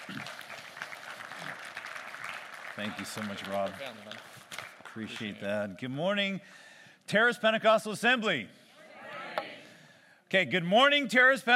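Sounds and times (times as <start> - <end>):
faint applause in a Pentecostal church: 0.0 - 5.5
speech: 2.8 - 4.3, 5.0 - 8.6, 10.3 - 11.5.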